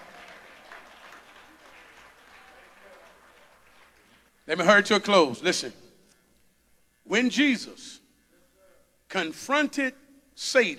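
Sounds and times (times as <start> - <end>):
audience clapping hands: 0.0 - 4.4
speech: 4.5 - 5.8, 7.2 - 8.0, 9.1 - 10.7.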